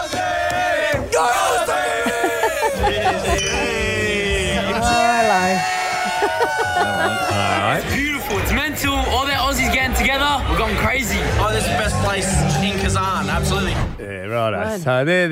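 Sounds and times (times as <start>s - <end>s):
crowd of fans cheering and shouting: 0.0s - 13.7s
laughter: 1.4s - 8.5s
speech: 6.3s - 15.3s.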